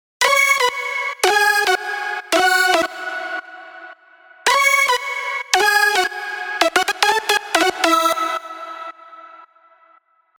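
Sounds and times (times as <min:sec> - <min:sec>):
lead melody: 0:00.2 - 0:03.9, 0:04.5 - 0:09.0.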